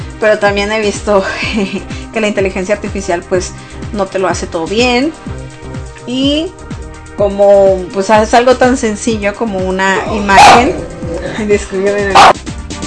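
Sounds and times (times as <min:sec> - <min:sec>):
speech: 0:00.2 - 0:05.4, 0:06.1 - 0:06.6, 0:07.2 - 0:12.4
dog barking loudly at other dogs: 0:10.2 - 0:11.4, 0:12.0 - 0:12.4.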